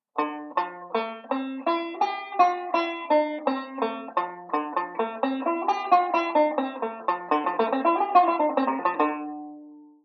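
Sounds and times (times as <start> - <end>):
banjo playing a modal speed drill: 0.0 - 10.0.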